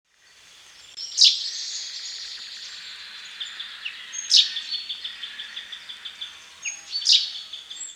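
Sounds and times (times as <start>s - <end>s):
Fringilla coelebs: 0.4s - 7.9s.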